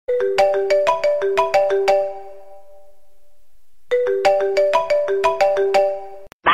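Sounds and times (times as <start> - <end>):
iPhone ringtone: 0.1 - 6.4.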